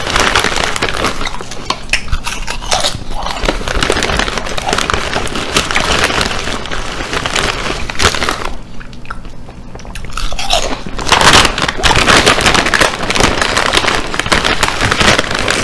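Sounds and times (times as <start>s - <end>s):
man eating chips loudly: 0.0s - 15.6s.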